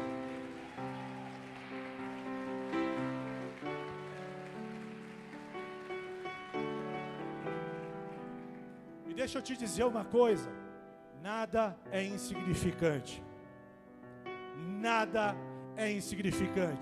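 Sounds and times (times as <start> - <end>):
church congregation applauding: 0.0 - 10.5
speech: 9.2 - 10.6, 11.2 - 13.3, 14.8 - 16.7.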